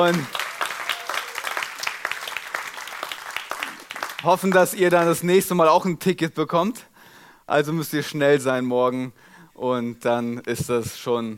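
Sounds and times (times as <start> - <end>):
speech: 0.0 - 0.4, 4.2 - 6.9, 7.5 - 11.3
audience applause: 0.0 - 5.1.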